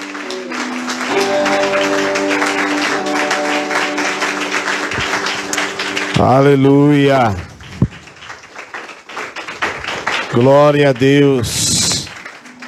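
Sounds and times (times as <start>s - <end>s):
sustained keyboard chords: 0.0s - 8.2s
audience applause: 0.0s - 12.6s
speech: 6.2s - 7.5s, 10.3s - 11.8s.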